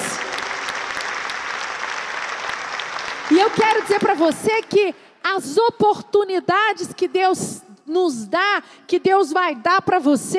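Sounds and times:
audience applause: 0.0s - 4.4s
speech: 3.3s - 10.3s.

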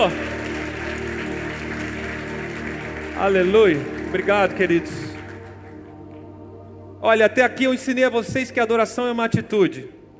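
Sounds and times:
speech: 0.0s - 0.3s, 3.2s - 5.1s, 7.0s - 10.0s
crowd applauding: 0.0s - 6.3s
low musical hum: 0.0s - 10.1s.

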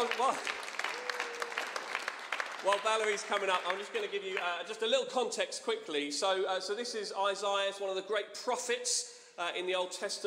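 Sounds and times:
audience cheering and applauding: 0.0s - 4.5s
speech: 0.2s - 0.6s, 2.6s - 10.2s.

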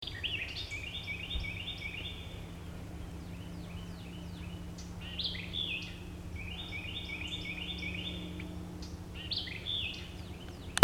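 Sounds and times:
birds chattering: 0.0s - 10.8s
steady low hum: 0.0s - 10.8s.

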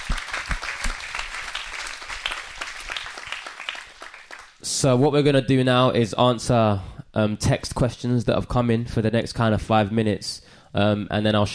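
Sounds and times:
audience round of applause: 0.0s - 4.6s
speech: 4.8s - 11.5s.

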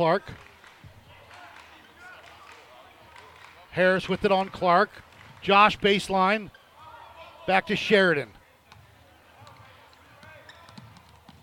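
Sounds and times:
speech: 0.0s - 0.5s, 3.7s - 6.6s, 7.4s - 8.4s
commentator talking: 3.7s - 8.4s
basketball dribbled during a game: 8.7s - 11.4s.

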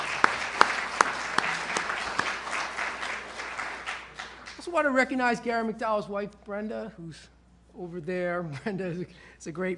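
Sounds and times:
audience applause: 0.0s - 4.6s
speech: 4.7s - 9.7s.

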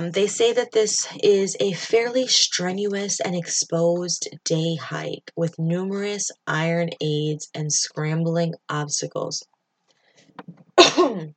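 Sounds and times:
speech: 0.0s - 9.5s, 10.4s - 11.3s
cough: 10.8s - 11.3s.

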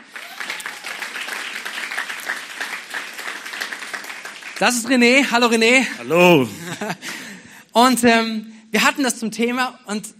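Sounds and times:
audience applause: 0.0s - 4.9s
speech: 4.6s - 10.1s
laughter: 6.2s - 7.2s.

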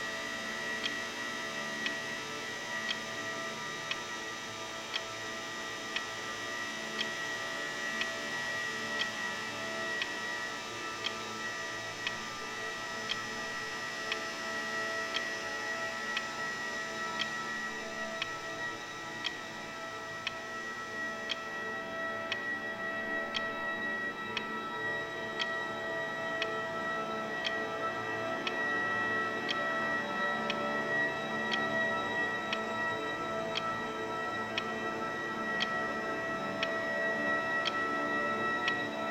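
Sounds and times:
steady dense room tone hum: 0.0s - 39.0s
clock-like tick: 0.8s - 1.1s, 4.8s - 6.1s, 7.0s - 7.3s, 12.0s - 12.2s, 15.1s - 15.4s, 16.1s - 20.4s, 21.2s - 21.5s, 22.2s - 27.6s, 28.4s - 29.7s, 31.3s - 33.7s, 36.4s - 36.8s, 37.6s - 37.8s.

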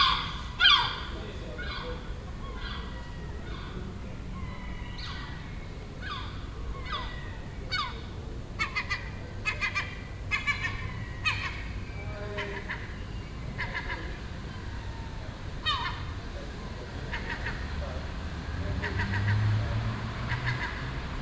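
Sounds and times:
gull calling: 0.0s - 18.0s, 18.6s - 21.2s.

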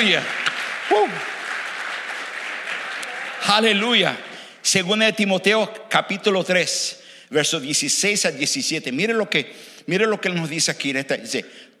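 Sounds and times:
speech: 0.0s - 1.4s, 3.4s - 11.7s
audience applause: 0.0s - 4.4s.

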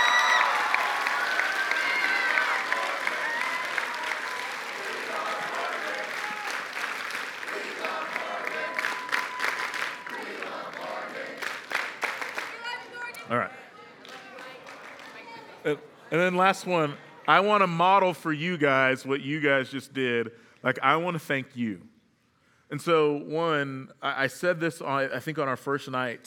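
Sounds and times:
audience applause, standing ovation: 0.0s - 12.9s, 14.0s - 15.7s
speech: 15.7s - 21.9s, 22.7s - 26.2s.

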